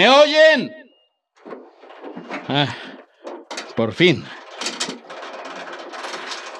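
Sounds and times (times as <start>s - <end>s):
speech: 0.0s - 0.8s, 2.5s - 2.9s, 3.8s - 4.4s
drawbridge mechanism lowering: 1.4s - 6.5s.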